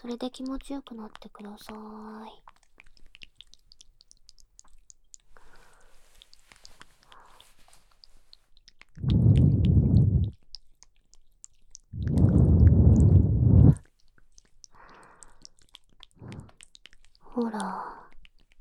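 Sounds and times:
speech: 0.0s - 2.5s, 17.4s - 18.0s
breath blown softly into the ear: 9.0s - 10.4s, 12.0s - 13.8s, 16.2s - 16.6s.

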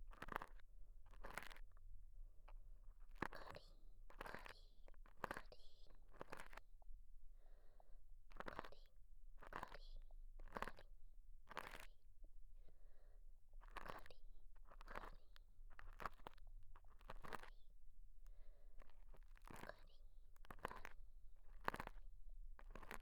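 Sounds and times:
sponge ear cleaning in the right ear: 0.1s - 1.8s, 2.8s - 6.7s, 7.4s - 10.9s, 11.5s - 12.0s, 13.6s - 17.6s, 18.3s - 23.0s.

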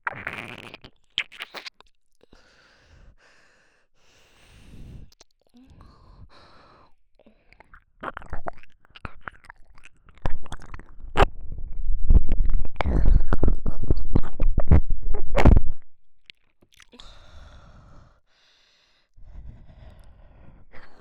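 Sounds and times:
ASMR ear licking in the right ear: 7.6s - 17.0s.

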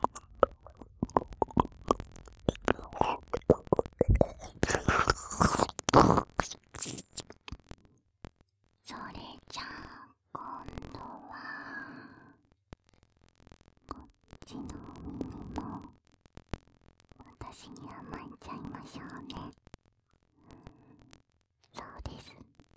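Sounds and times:
ASMR ear licking sounds: 0.0s - 7.6s.

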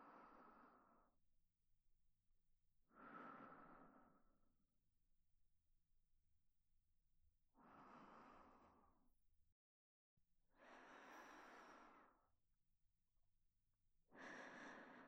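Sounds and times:
sleeping breaths on the right channel: 0.0s - 1.1s, 2.9s - 4.4s, 7.6s - 9.0s, 10.5s - 12.3s, 14.1s - 15.0s.

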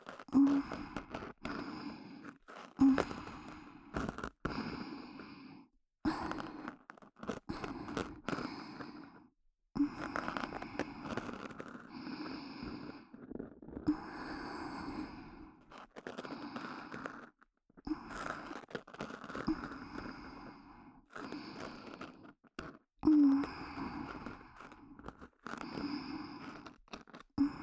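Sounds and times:
ear scratching and ear cleaning in the right ear for sleep: 0.0s - 4.8s, 6.1s - 9.0s, 9.9s - 14.0s, 15.0s - 20.4s, 21.1s - 22.8s, 23.4s - 27.6s.

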